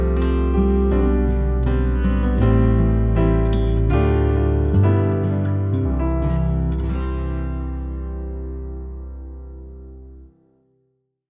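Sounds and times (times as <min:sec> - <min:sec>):
instrumental church music: 0:00.0 - 0:10.3.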